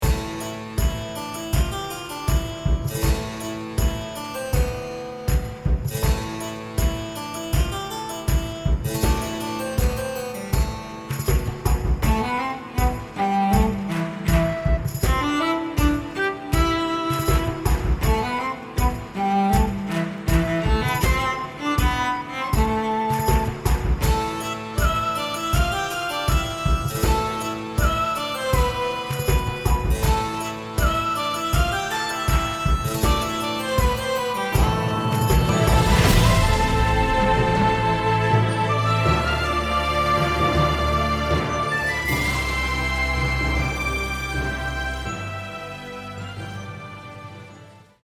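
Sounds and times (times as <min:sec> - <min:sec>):
royalty-free instrumental music: 0:00.0 - 0:48.0.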